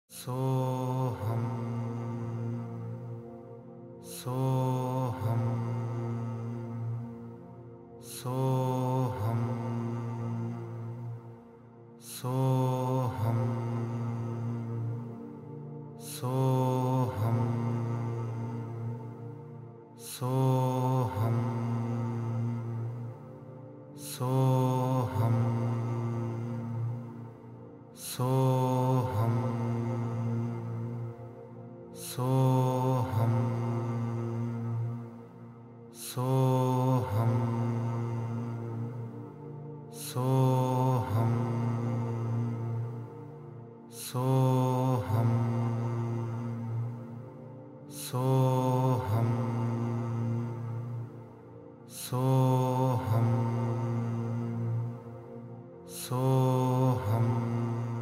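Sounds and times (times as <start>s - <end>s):
mantra chanting: 0.0s - 58.0s.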